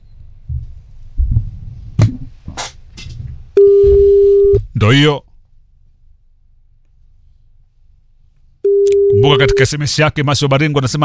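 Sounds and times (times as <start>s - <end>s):
phone busy signal: 3.6s - 4.6s, 8.7s - 9.7s
speech: 4.8s - 5.3s, 9.3s - 11.0s
faint low clicks and handling noise: 8.4s - 9.2s.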